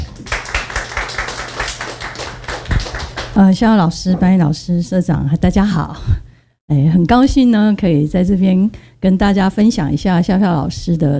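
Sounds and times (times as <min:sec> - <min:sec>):
audience applause: 0:00.1 - 0:03.4
speech: 0:03.4 - 0:11.1.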